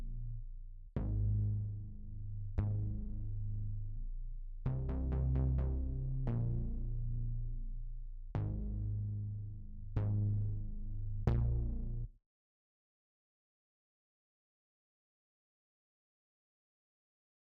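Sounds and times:
bass: 0.0 - 12.2.

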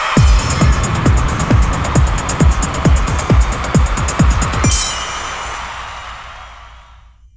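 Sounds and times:
fashion jingle music: 0.2 - 6.4.

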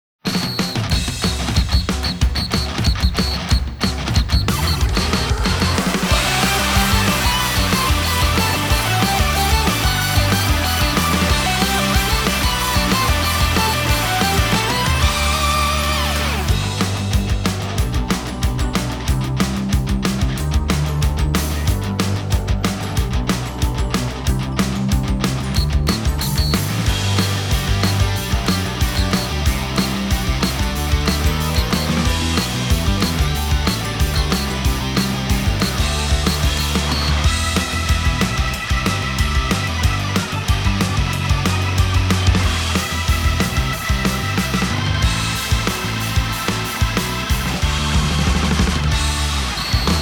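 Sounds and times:
instrumental music: 0.7 - 50.0.

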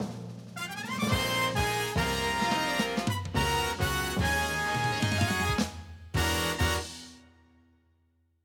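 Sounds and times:
game round start jingle: 1.1 - 7.0.

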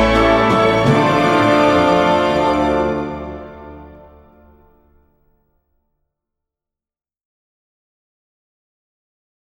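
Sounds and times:
waltz music: 0.0 - 5.3.

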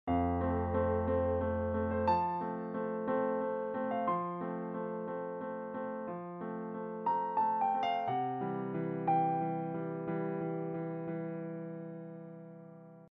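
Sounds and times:
grand piano: 0.1 - 13.1.

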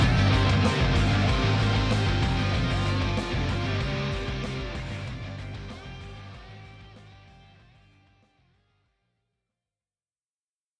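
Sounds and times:
tense music: 0.0 - 7.3.

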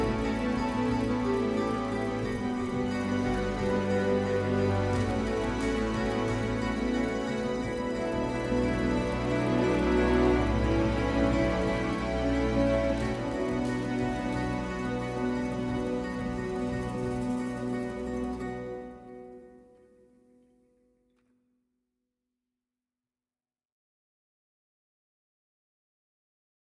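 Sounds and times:
epic ethnic music: 0.0 - 19.7.

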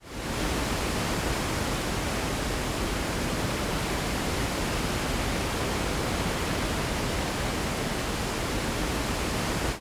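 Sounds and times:
waterfall: 0.0 - 9.8.

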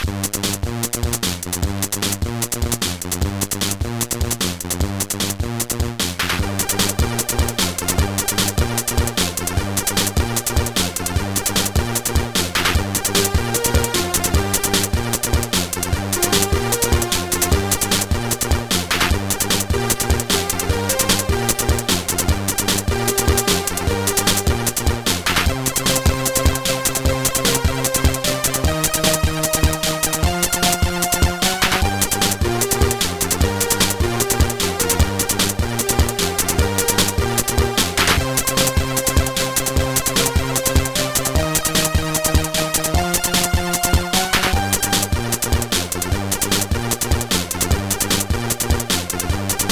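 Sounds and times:
SID chip music in stereo: 0.1 - 49.7.

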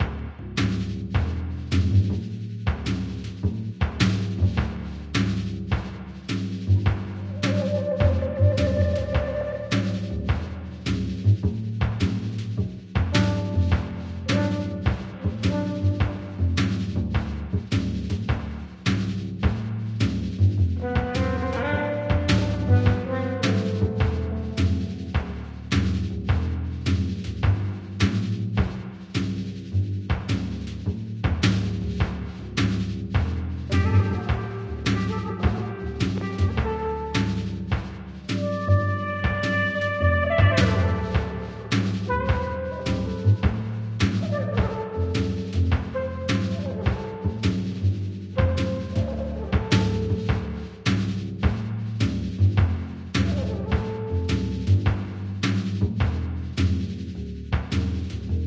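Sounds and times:
smoking room bass loop: 0.0 - 58.4.

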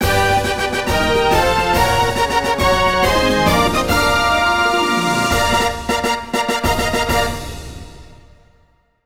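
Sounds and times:
zone clear fanfare: 0.0 - 8.1.

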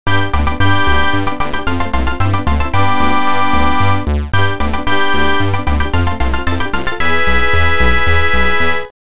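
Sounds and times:
congratulatory fanfare: 0.1 - 8.9.

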